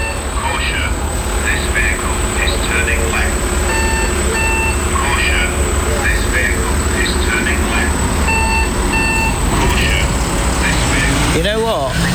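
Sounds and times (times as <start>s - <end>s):
vehicle engine rumble: 0.0s - 12.1s
short electronic beeps: 2.4s - 5.8s, 6.9s - 11.3s.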